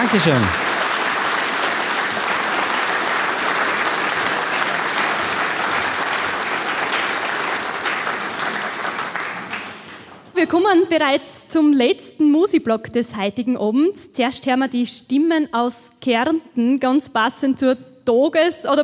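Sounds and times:
audience applause: 0:00.0 - 0:10.2
speech: 0:00.1 - 0:00.6, 0:10.4 - 0:18.8.

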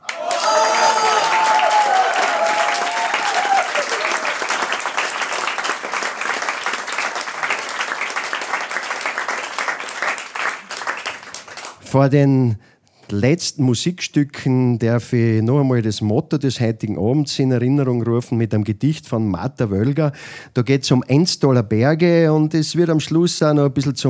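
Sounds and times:
people cheering: 0:00.0 - 0:11.7
audience applause: 0:00.0 - 0:11.8
speech: 0:12.0 - 0:24.0.

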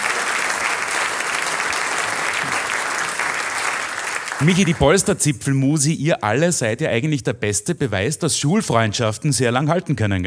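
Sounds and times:
audience applause: 0:00.0 - 0:05.2
speech: 0:04.4 - 0:10.2.

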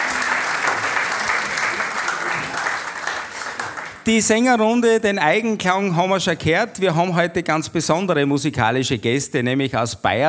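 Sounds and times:
audience applause: 0:00.0 - 0:04.1
speech: 0:04.0 - 0:10.2.

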